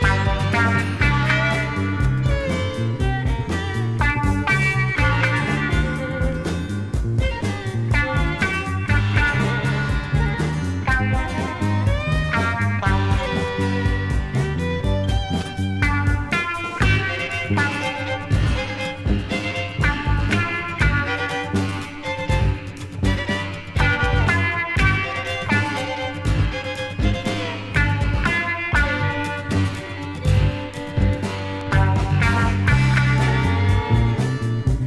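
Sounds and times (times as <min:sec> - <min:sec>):
blue guitar: 0:00.0 - 0:34.8.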